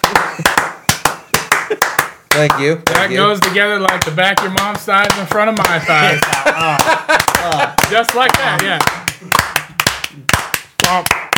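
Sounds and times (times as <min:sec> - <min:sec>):
laughter: 0:00.0 - 0:02.0, 0:05.6 - 0:08.7
hand clapping: 0:00.0 - 0:11.3
speech: 0:02.4 - 0:09.5, 0:10.9 - 0:11.2.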